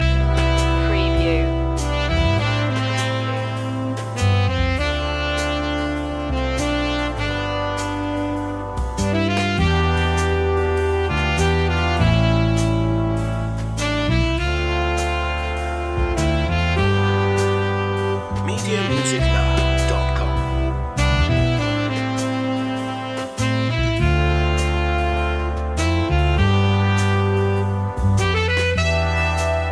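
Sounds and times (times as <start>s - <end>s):
romantic big band music loop: 0.0s - 29.6s.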